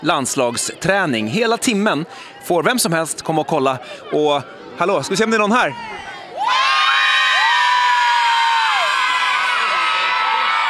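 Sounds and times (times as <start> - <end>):
speech: 0.0 - 6.6
crowd of spectators cheering in stands: 5.6 - 10.6.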